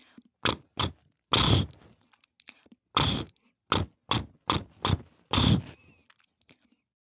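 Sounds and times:
lip trill: 0:00.4 - 0:01.8, 0:03.0 - 0:05.8.

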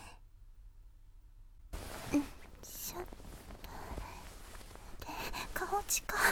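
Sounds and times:
binaural oil massage on right and left ears: 0:01.7 - 0:06.2.

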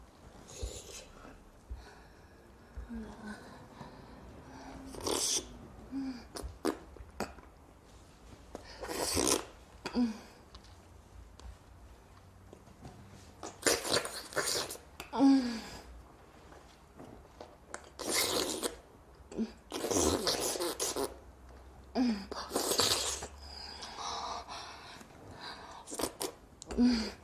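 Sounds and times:
married woman making oral sex sucking sounds: 0:00.5 - 0:01.5, 0:02.7 - 0:07.5, 0:08.5 - 0:10.2, 0:13.4 - 0:15.3, 0:17.8 - 0:21.3, 0:22.2 - 0:23.5, 0:25.7 - 0:27.1.

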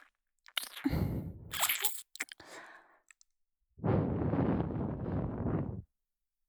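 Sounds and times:
ASMR ear licking sounds: 0:00.7 - 0:01.7, 0:03.8 - 0:05.8.

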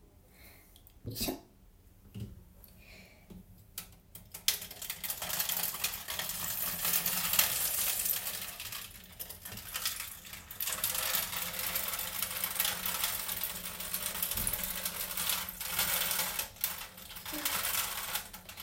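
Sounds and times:
urine on tin foil: 0:04.5 - 0:18.6.

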